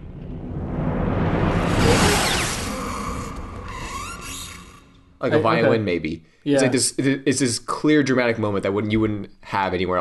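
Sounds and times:
sizzling lightsaber slash effect: 0:00.8 - 0:03.2
speech: 0:05.2 - 0:09.9.

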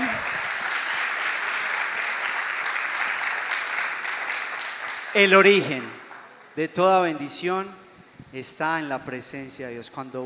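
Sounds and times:
audience applause: 0:00.0 - 0:06.4
speech: 0:05.2 - 0:06.0, 0:06.6 - 0:10.2.

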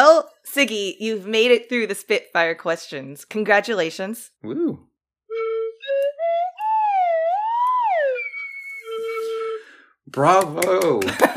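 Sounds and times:
speech: 0:00.2 - 0:06.5, 0:10.1 - 0:11.3
slide whistle: 0:05.3 - 0:10.0
laughter: 0:10.9 - 0:11.3.

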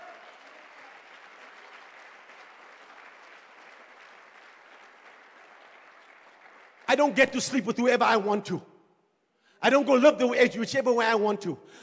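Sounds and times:
audience clapping: 0:00.0 - 0:07.8
speech: 0:06.9 - 0:08.7, 0:09.6 - 0:11.8.

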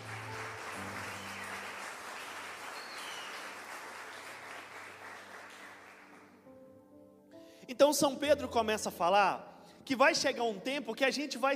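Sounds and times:
audience applauding: 0:00.0 - 0:06.4
speech: 0:07.7 - 0:11.5.

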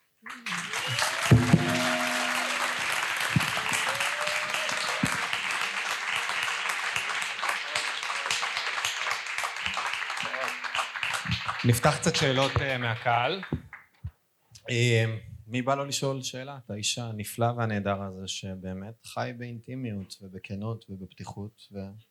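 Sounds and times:
audience applause: 0:00.0 - 0:13.5
speech: 0:11.7 - 0:13.6, 0:14.7 - 0:22.1.

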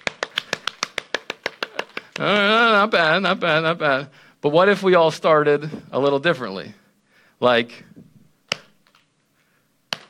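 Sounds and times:
audience clapping in rhythm: 0:00.0 - 0:02.7
speech: 0:02.2 - 0:06.8, 0:07.4 - 0:08.1.

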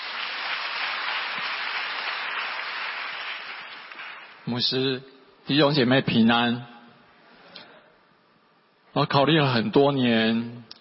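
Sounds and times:
audience clapping: 0:00.0 - 0:04.5
speech: 0:04.5 - 0:06.7, 0:09.0 - 0:10.7.

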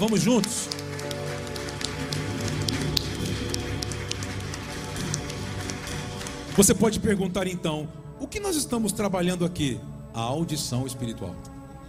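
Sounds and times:
speech: 0:00.0 - 0:00.8, 0:06.6 - 0:11.5
audience applauding: 0:00.0 - 0:07.3.

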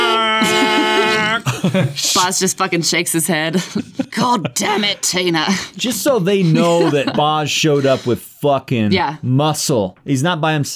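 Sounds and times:
voice imitating a car horn honk: 0:00.0 - 0:01.4
laughter: 0:00.2 - 0:02.4, 0:03.3 - 0:08.2
speech: 0:00.4 - 0:10.7.

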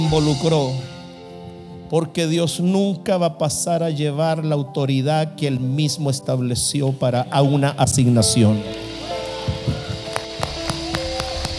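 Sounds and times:
speech: 0:00.0 - 0:00.9, 0:01.9 - 0:08.9
one person clapping hands: 0:09.6 - 0:11.5.

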